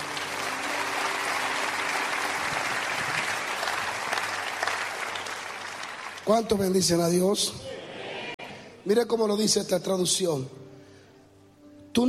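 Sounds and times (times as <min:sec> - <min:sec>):
audience applauding: 0:00.0 - 0:07.0
speech: 0:06.3 - 0:07.7, 0:08.9 - 0:10.6.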